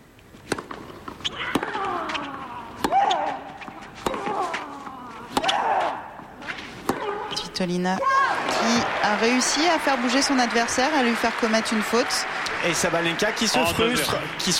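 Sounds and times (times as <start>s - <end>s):
low background of court noise: 0.0s - 14.5s
tennis ball strikes at a professional women's tennis match: 0.4s - 8.1s
speech: 7.6s - 14.5s.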